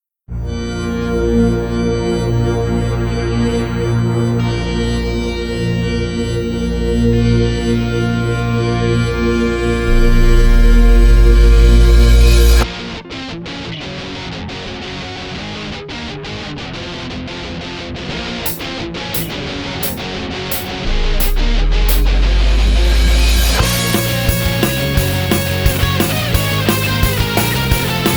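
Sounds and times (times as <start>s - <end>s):
eurobeat music: 0.4s - 12.6s, 18.5s - 28.1s.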